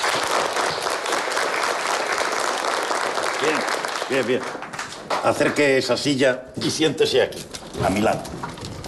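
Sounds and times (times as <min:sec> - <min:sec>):
classroom applause welcoming a newcomer: 0:00.0 - 0:06.1
speech: 0:03.4 - 0:08.3.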